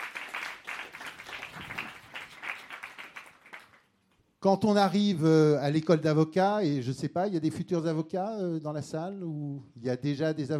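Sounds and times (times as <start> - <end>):
audience applause: 0.0 - 3.9
speech: 4.4 - 10.5.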